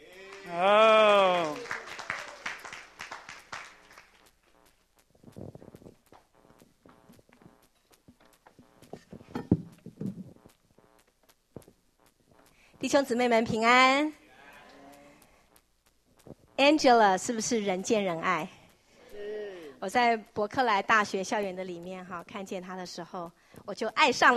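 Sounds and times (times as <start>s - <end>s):
audience applause: 0.1s - 4.2s
speech: 0.4s - 0.9s, 12.9s - 14.2s, 16.6s - 18.6s, 19.8s - 24.3s.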